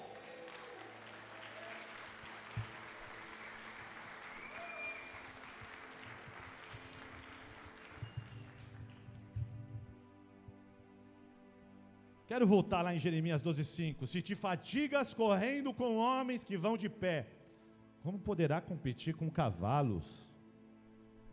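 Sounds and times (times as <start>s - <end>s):
audience applause: 0.0s - 9.8s
speech: 12.3s - 17.4s, 18.0s - 20.3s.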